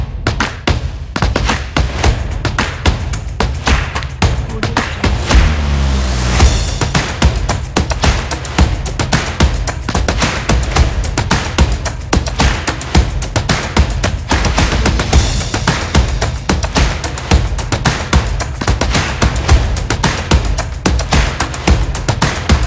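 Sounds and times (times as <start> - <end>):
percussion drums: 0.0 - 22.6.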